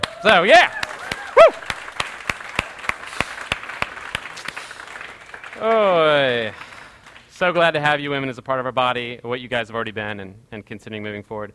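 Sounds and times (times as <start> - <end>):
whoop or cheer: 0.0 - 1.8
room full of people applauding: 0.0 - 7.3
speech: 0.2 - 0.8, 1.4 - 1.6, 5.6 - 6.6, 7.4 - 11.5.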